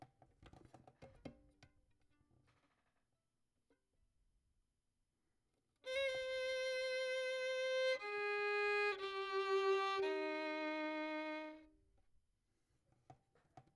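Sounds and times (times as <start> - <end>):
violin: 5.8 - 11.8.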